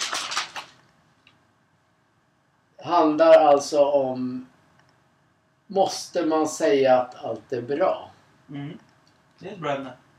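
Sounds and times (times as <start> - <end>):
binder pages being leafed through: 0.0 - 0.9
speech: 2.8 - 4.5, 5.7 - 8.8, 9.4 - 10.0.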